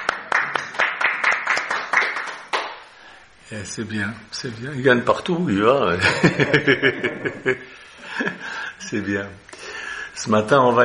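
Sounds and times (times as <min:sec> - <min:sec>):
people clapping hands: 0:00.0 - 0:02.9
speech: 0:03.5 - 0:09.5, 0:10.2 - 0:10.8
laughter: 0:06.0 - 0:08.6.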